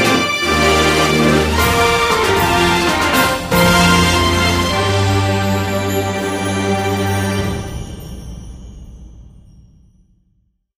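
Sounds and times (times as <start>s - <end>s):
battle background music: 0.0s - 8.2s.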